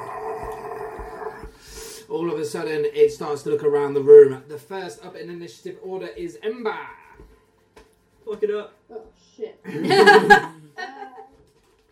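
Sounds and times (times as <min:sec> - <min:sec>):
monster creature scream: 0:00.0 - 0:01.5
speech: 0:02.1 - 0:07.0, 0:08.3 - 0:10.6
laughter: 0:09.7 - 0:11.3.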